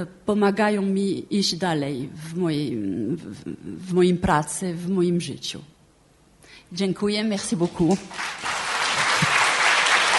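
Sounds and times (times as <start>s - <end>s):
speech: 0.0s - 5.7s, 6.7s - 8.5s
audience applause: 8.1s - 10.1s.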